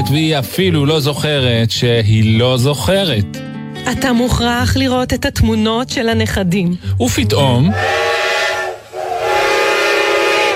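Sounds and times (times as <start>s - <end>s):
speech: 0.0s - 8.1s
train whistle: 7.7s - 10.5s.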